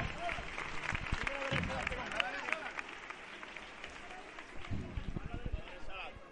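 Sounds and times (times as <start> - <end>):
crowd applauding a procession in Jerez: 0.0 - 5.9.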